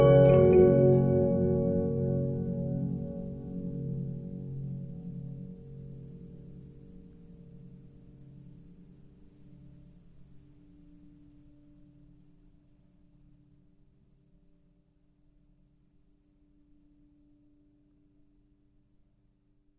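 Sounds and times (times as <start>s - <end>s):
Regina 15-inch disc music box: 0.0s - 3.5s.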